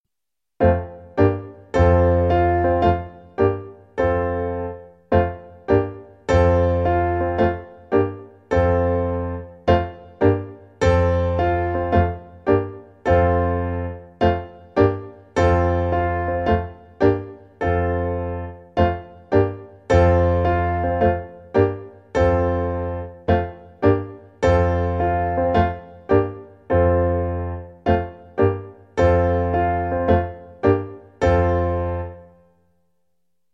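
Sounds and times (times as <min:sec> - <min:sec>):
piano: 0:00.6 - 0:33.0.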